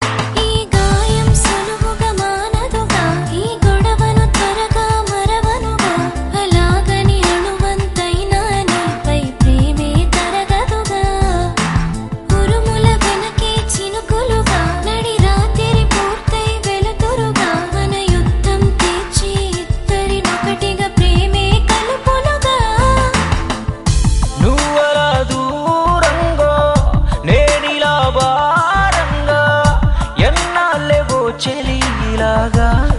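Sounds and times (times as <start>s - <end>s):
Telugu song: 0.0s - 32.9s.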